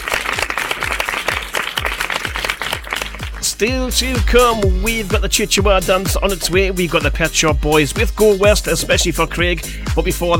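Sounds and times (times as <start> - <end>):
round of applause: 0.0 - 3.6
speech: 3.6 - 10.3.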